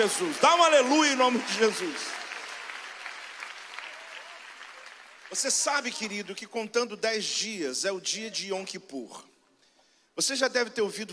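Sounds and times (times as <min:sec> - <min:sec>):
speech: 0:00.0 - 0:02.2, 0:05.3 - 0:09.3, 0:10.2 - 0:11.1
audience applause: 0:00.0 - 0:06.3.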